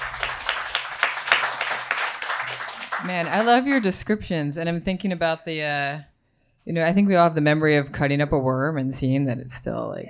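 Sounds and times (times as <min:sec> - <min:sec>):
round of applause: 0:00.0 - 0:04.0
speech: 0:03.1 - 0:10.0.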